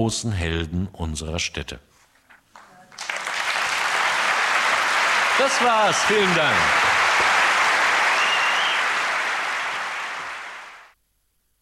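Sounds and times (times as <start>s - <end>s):
speech: 0.0s - 1.9s, 5.4s - 6.8s
enthusiastic audience applause: 2.6s - 11.0s.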